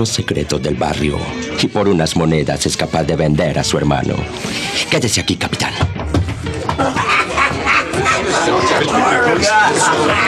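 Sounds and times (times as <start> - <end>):
speech: 0.0 - 6.0, 6.8 - 7.2, 8.3 - 10.2
laughter: 6.4 - 10.2
rowdy crowd of drinkers shouting in tavern: 7.9 - 10.2.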